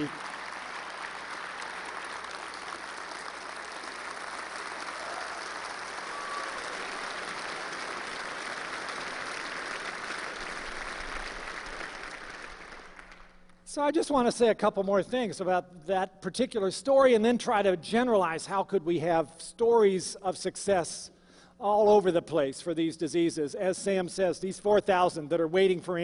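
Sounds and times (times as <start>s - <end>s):
audience applause at a talk: 0.0s - 13.4s
speech: 13.8s - 26.0s.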